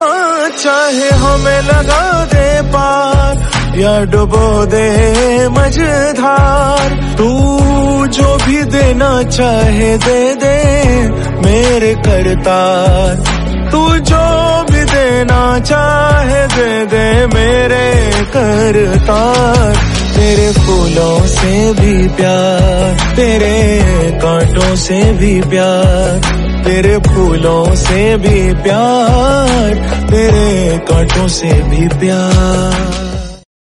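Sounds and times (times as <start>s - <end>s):
devotional music: 0.0s - 33.4s.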